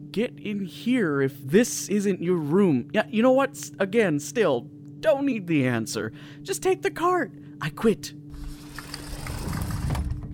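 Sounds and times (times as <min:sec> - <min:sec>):
speech: 0:00.2 - 0:08.2
sliding door sliding shut: 0:08.3 - 0:10.3.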